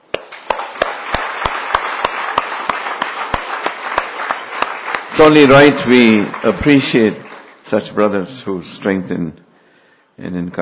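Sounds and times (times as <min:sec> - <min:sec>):
audience applause: 0:00.2 - 0:07.8
speech: 0:05.2 - 0:09.4, 0:10.2 - 0:10.6.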